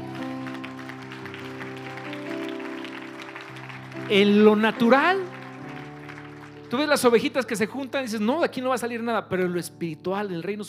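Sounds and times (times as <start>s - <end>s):
audience applauding: 0.0s - 7.7s
sustained keyboard chords: 0.0s - 10.6s
speech: 4.1s - 5.4s, 6.7s - 10.6s.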